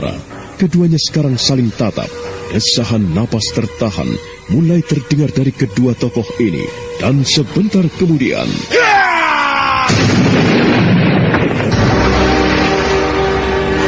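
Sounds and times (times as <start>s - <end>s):
speech: 0.0s - 8.9s, 9.9s - 10.4s
loud explosion from two fighters' hands clashing: 9.8s - 13.7s
heavy boom: 9.9s - 13.6s.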